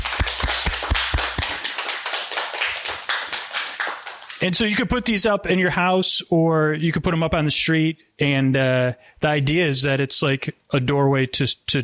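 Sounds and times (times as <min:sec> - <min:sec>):
audience round of applause: 0:00.0 - 0:04.4
speech: 0:04.4 - 0:11.8.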